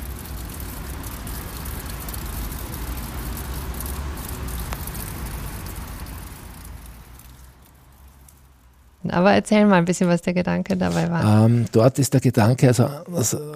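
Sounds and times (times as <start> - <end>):
water dripping: 0.0 - 9.1
road traffic roaring: 0.0 - 11.8
speech: 9.1 - 13.5.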